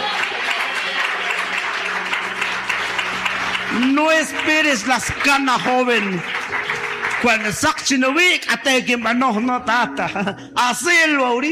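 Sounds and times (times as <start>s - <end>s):
audience applause: 0.0s - 8.1s
speech: 3.8s - 6.6s, 7.2s - 11.5s.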